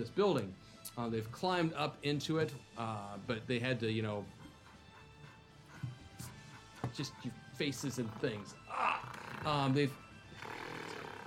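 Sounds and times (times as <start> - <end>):
speech: 0.0 - 4.4, 7.0 - 10.0
voice imitating a snarling gorilla growl: 7.9 - 9.8.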